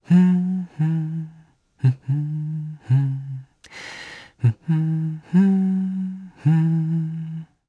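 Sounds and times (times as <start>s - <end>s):
hum: 0.0s - 7.6s.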